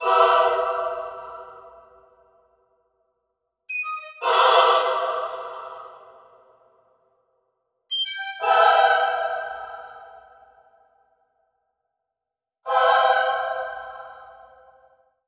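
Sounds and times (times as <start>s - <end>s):
choir singing in a cave: 0.0s - 2.1s, 3.7s - 6.6s, 7.9s - 10.6s, 12.7s - 14.8s.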